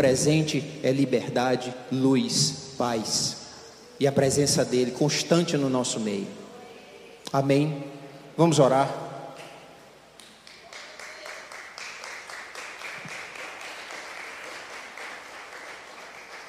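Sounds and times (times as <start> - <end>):
speech: 0.0 - 3.4, 4.0 - 6.4, 7.3 - 9.0
audience clapping: 10.2 - 16.4.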